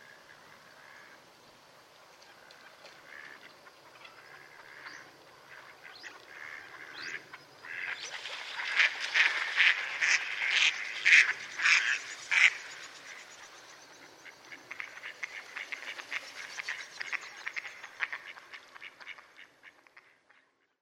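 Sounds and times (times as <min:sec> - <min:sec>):
mallard quacking: 0:03.0 - 0:08.0, 0:08.6 - 0:12.7, 0:14.2 - 0:20.6.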